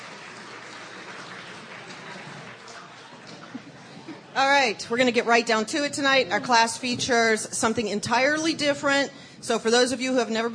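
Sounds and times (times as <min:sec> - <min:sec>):
audience applause: 0:00.0 - 0:04.2
speech: 0:04.4 - 0:10.5.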